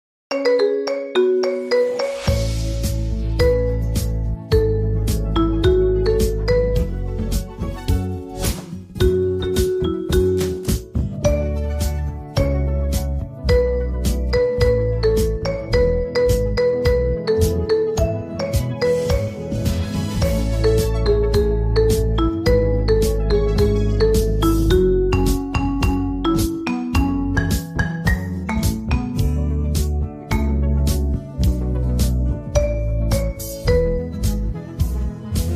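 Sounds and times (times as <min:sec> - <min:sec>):
marimba: 0:00.3 - 0:07.7, 0:09.0 - 0:35.4.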